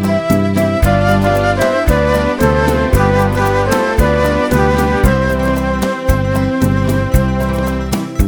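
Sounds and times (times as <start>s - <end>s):
accordion playing beguine: 0.2s - 8.2s.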